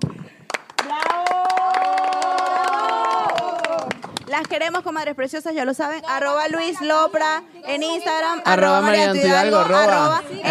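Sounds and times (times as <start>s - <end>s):
applause: 0.0s - 4.8s
people cheering and whooping: 0.8s - 4.1s
speech: 4.3s - 10.5s.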